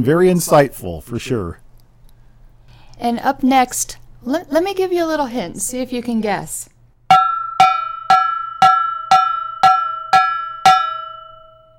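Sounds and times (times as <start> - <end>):
speech: 0.0 - 1.6, 3.0 - 6.7
cowbell being struck: 7.1 - 11.7.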